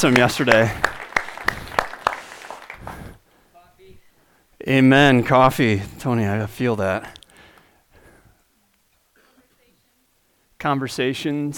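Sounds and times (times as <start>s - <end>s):
speech: 0.0s - 0.9s, 4.6s - 7.2s, 10.6s - 11.5s
applause: 0.0s - 3.2s.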